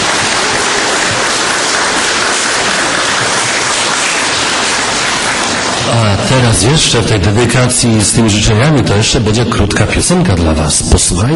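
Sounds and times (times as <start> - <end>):
crowd applauding: 0.0 - 7.7
speech: 6.3 - 11.3.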